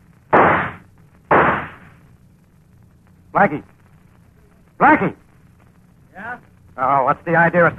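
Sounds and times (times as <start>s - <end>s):
gunshots fired as a warning: 0.3s - 2.0s
speech: 3.3s - 3.7s, 4.8s - 5.2s, 6.3s - 7.7s.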